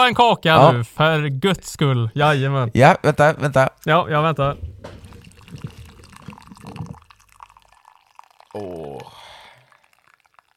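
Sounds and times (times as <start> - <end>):
speech: 0.0 - 5.0, 8.6 - 9.2
freshly brewed coffee poured into a cup: 4.4 - 10.5.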